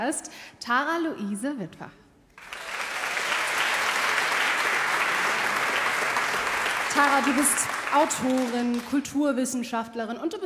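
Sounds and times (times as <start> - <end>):
speech: 0.0 - 2.6, 7.0 - 10.4
studio audience applause welcoming an author onto a talk show: 2.4 - 9.2.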